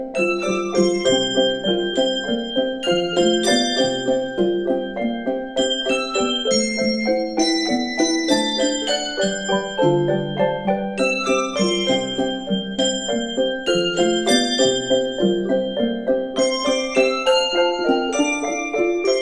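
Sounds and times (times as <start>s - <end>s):
concert bell choir: 0.2s - 19.2s.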